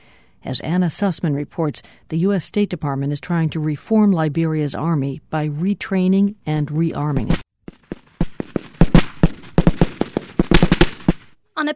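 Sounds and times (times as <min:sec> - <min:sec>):
speech: 0:00.4 - 0:07.8, 0:11.6 - 0:11.7
machine guns firing during Liberian army training: 0:07.7 - 0:11.4.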